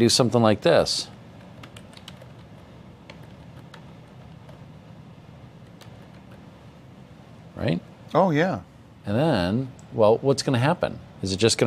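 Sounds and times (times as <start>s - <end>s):
speech: 0.0s - 1.2s, 7.6s - 11.6s
computer keyboard typing: 1.3s - 4.7s, 5.6s - 6.4s.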